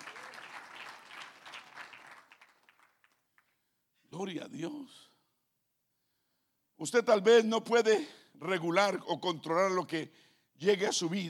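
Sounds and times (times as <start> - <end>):
audience applause: 0.0 - 3.2
speech: 4.2 - 5.1, 6.8 - 11.2.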